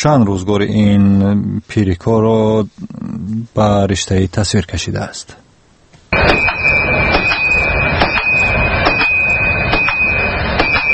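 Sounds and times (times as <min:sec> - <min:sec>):
speech: 0:00.0 - 0:05.4
blacksmith's hammer striking anvil: 0:06.2 - 0:10.9.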